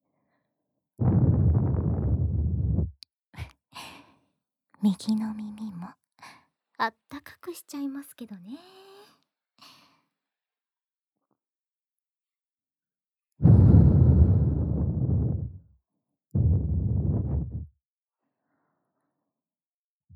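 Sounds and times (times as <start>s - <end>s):
blowing into ear: 1.0s - 2.9s, 13.4s - 15.6s, 16.4s - 17.7s.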